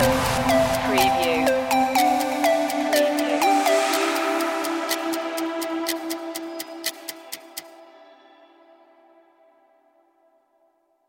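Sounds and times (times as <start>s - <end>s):
countdown loop end: 0.0s - 8.1s.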